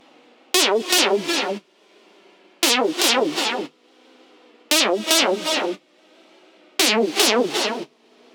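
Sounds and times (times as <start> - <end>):
percussion injections: 0.6 - 1.6, 2.6 - 3.7, 4.7 - 5.8, 6.8 - 7.9.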